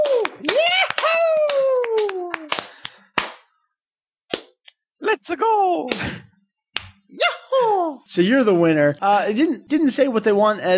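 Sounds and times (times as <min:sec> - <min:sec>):
cheering: 0:00.0 - 0:02.5
hand clapping: 0:00.0 - 0:03.5, 0:06.7 - 0:07.0
speech: 0:05.2 - 0:06.3, 0:08.1 - 0:10.7.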